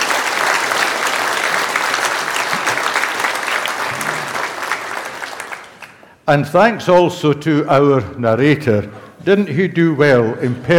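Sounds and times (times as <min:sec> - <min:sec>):
audience applause: 0:00.0 - 0:06.2
speech: 0:06.3 - 0:10.7.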